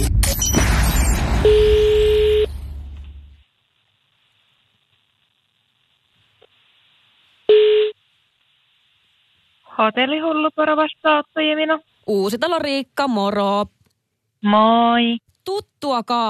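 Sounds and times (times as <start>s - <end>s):
short loud telephone tone: 0.2s - 2.9s
telephone line tone: 1.4s - 2.6s, 7.5s - 8.0s
speech: 9.8s - 13.8s, 14.4s - 16.2s.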